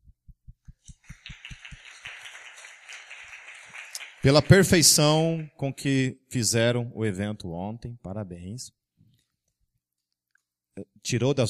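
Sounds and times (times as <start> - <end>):
applause: 0.9 - 5.6
speech: 4.2 - 8.8, 10.8 - 11.4.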